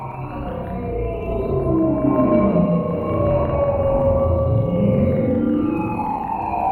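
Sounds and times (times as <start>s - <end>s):
long dark title transition stab: 0.2s - 6.6s.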